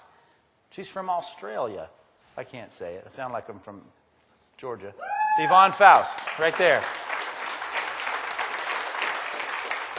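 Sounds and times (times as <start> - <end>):
speech: 0.8 - 4.0, 4.6 - 7.0
smattering of applause: 5.4 - 9.9.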